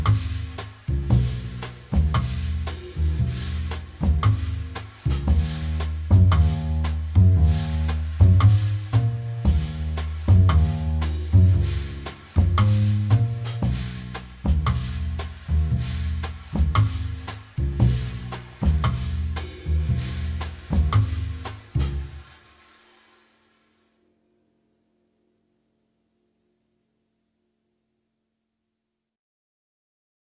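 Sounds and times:
bass at 115bpm: 0.0 - 22.6
drums at 115bpm: 0.0 - 23.8.

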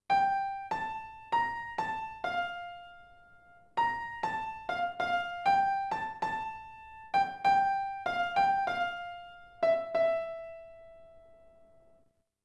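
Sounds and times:
ending piano: 0.0 - 12.1.

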